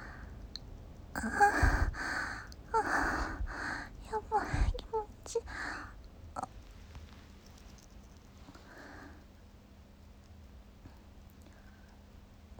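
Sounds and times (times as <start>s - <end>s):
female university student masturbating: 1.2s - 6.5s.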